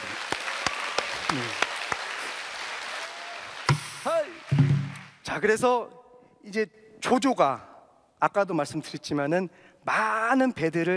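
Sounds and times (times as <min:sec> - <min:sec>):
audience applause: 0:00.0 - 0:05.2
speech: 0:05.4 - 0:10.9.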